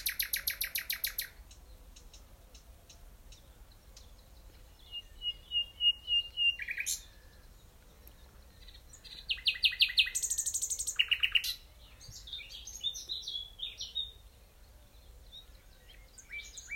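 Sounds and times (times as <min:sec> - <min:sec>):
nightingale singing: 0:00.0 - 0:16.7.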